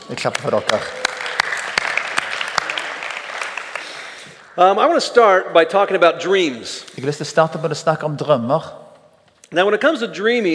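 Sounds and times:
speech: 0:00.1 - 0:01.1, 0:04.6 - 0:08.8, 0:09.5 - 0:10.5
audience applause: 0:00.1 - 0:05.0.

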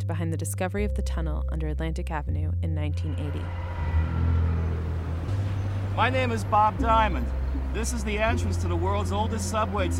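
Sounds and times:
speech: 0:00.1 - 0:04.3, 0:06.0 - 0:09.9
busy city street traffic with cars and heavier vehicles: 0:03.0 - 0:09.9.

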